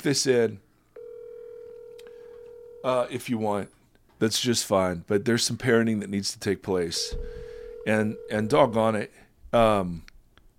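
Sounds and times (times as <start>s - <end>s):
speech: 0.0s - 0.7s, 2.8s - 10.1s
telephone tone as a number is dialed: 1.0s - 2.8s, 7.0s - 8.6s.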